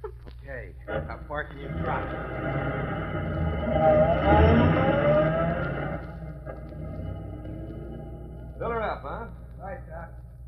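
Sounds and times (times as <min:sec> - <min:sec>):
speech: 0:00.5 - 0:05.2
car pulling up: 0:00.9 - 0:08.9.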